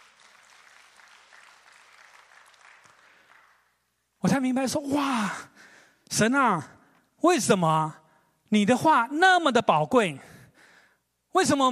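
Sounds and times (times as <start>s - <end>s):
applause: 0.0s - 4.0s
speech: 4.3s - 10.3s, 11.4s - 11.7s.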